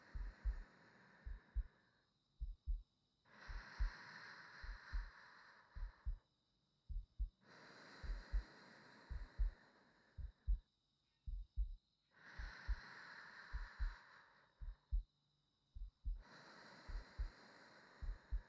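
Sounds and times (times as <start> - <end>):
new wife's heartbeat: 0.0 - 1.7, 2.4 - 2.9, 3.5 - 4.0, 4.6 - 5.2, 5.8 - 6.2, 6.9 - 7.4, 8.0 - 8.5, 9.1 - 9.6, 10.2 - 10.7, 11.3 - 11.8, 12.4 - 12.8, 13.5 - 14.0, 14.6 - 15.1, 15.8 - 16.2, 16.9 - 17.4, 18.0 - 18.4
sleeping breathing: 0.0 - 2.0, 3.3 - 6.2, 7.4 - 10.6, 12.2 - 14.9, 16.1 - 18.4.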